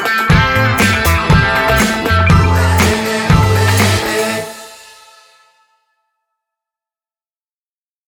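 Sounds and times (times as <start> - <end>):
groove music: 0.0 - 5.2.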